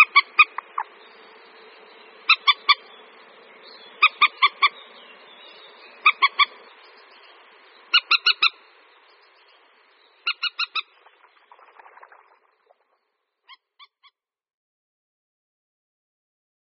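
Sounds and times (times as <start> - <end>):
common moorhen calling: 0.0 - 12.5.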